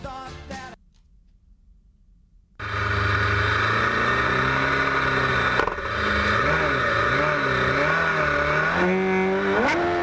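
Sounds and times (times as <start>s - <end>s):
music: 0.0s - 0.8s
barchetta race car engine revving: 2.6s - 10.0s.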